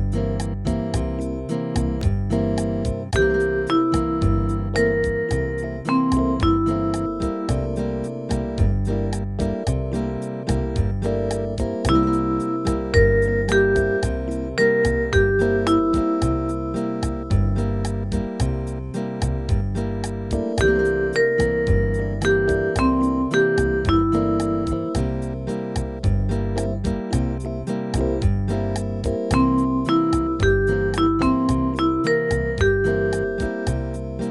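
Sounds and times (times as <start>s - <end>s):
dominant seventh arpeggio from the root: 0.1s - 34.2s.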